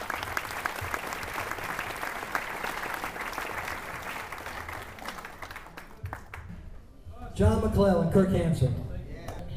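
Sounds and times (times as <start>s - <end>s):
audience applause: 0.0s - 6.5s
speech: 7.4s - 8.8s.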